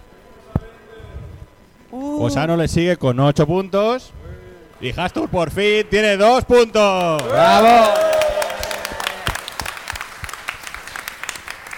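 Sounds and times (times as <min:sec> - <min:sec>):
speech: 0:01.9 - 0:04.2, 0:04.8 - 0:08.1
small group clapping: 0:07.0 - 0:11.7.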